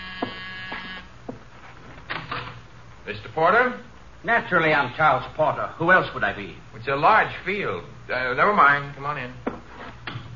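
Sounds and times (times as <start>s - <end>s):
door buzzer: 0.0s - 1.1s
speech: 3.1s - 9.5s.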